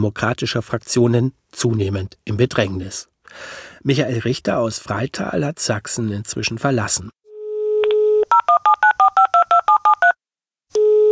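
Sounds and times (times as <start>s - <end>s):
speech: 0.0s - 7.2s
telephone dial tone: 7.3s - 11.0s
two-pitch telephone keypad tones dialing a call: 7.8s - 10.2s.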